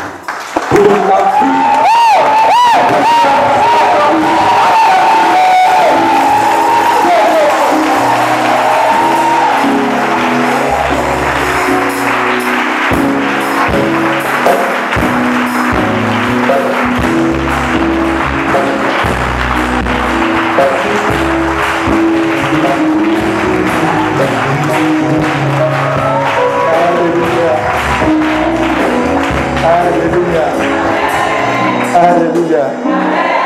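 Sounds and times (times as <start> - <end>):
church congregation clapping: 0.0 - 33.4
church congregation shouting and whooping: 0.7 - 12.4, 19.0 - 29.2, 30.7 - 33.4
speech: 0.8 - 1.6, 2.8 - 4.2, 32.0 - 33.0.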